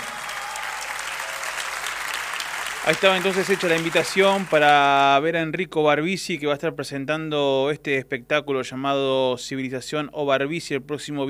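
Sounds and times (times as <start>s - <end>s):
audience applause: 0.0s - 5.1s
speech: 2.8s - 11.2s.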